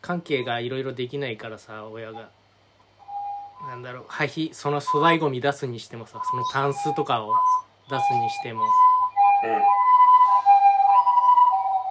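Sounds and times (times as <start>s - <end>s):
speech: 0.0s - 2.4s, 3.6s - 8.8s, 9.4s - 9.8s
ambulance siren passing by: 6.2s - 11.8s.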